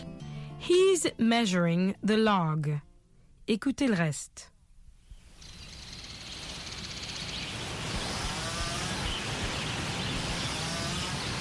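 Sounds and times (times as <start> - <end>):
speech: 0.7 - 2.9, 3.5 - 4.5
chainsaws cutting wood: 7.7 - 11.4.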